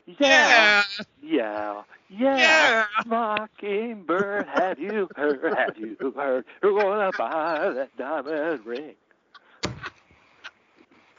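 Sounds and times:
person imitating a parrot squawk: 0:00.1 - 0:01.0, 0:02.4 - 0:03.1
speech: 0:00.1 - 0:10.0
laughter: 0:02.4 - 0:08.9.

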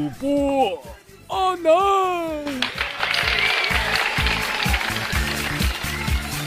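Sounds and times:
speech: 0:00.0 - 0:02.8
applause: 0:02.4 - 0:06.4.

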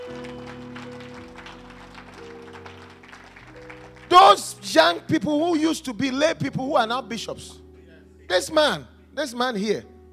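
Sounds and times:
crowd clapping: 0:00.0 - 0:05.0
sustained keyboard chords: 0:00.0 - 0:10.1
speech: 0:04.1 - 0:07.6, 0:08.3 - 0:09.9.

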